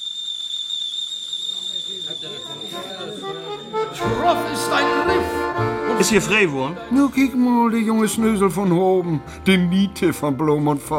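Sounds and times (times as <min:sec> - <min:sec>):
whistling kettle: 0:00.0 - 0:04.0
voices murmuring: 0:01.4 - 0:09.0
speech: 0:02.2 - 0:10.9.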